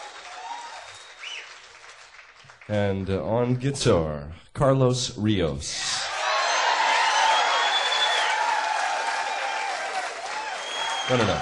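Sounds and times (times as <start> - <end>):
audience applause: 0.0 - 2.7, 6.1 - 11.4
speech: 2.7 - 6.0, 11.1 - 11.4.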